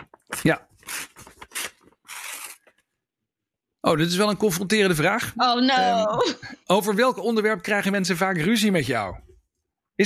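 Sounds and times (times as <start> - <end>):
envelope being torn open: 0.0 - 2.8
speech: 0.4 - 0.7, 3.8 - 9.3.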